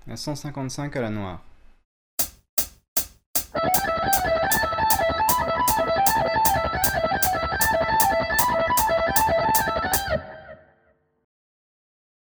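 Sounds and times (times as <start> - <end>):
musical lick: 2.2 - 10.1.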